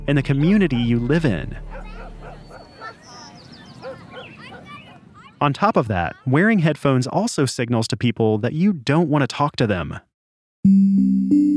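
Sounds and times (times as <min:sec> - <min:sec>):
speech: 0:00.1 - 0:01.9, 0:05.4 - 0:11.5
dog barking: 0:00.3 - 0:05.1.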